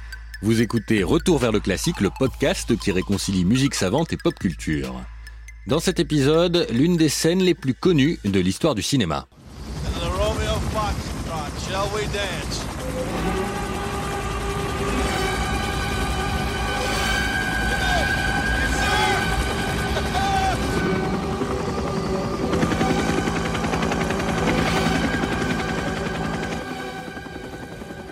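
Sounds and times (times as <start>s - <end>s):
speech: 0.4s - 9.4s, 10.8s - 13.4s
helicopter attack: 9.4s - 28.1s.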